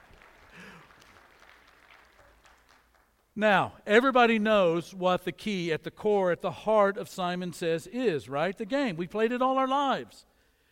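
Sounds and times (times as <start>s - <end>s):
golf clap: 0.0s - 3.3s
speech: 3.4s - 10.3s.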